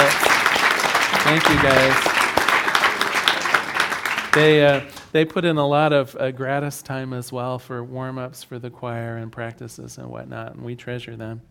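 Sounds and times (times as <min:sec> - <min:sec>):
crowd applause: 0:00.0 - 0:05.0
speech: 0:01.3 - 0:02.1, 0:04.4 - 0:11.5.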